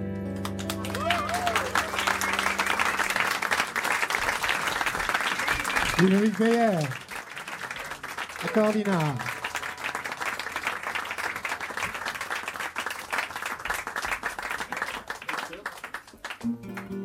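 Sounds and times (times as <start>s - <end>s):
jazz club audience applause: 0.2s - 17.0s
jazz club audience whooping: 0.4s - 6.3s
speech: 6.0s - 7.0s, 8.5s - 9.4s.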